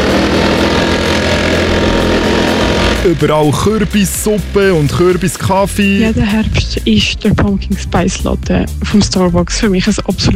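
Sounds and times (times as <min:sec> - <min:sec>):
leaf blower running: 0:00.0 - 0:07.3
speech: 0:03.1 - 0:10.3.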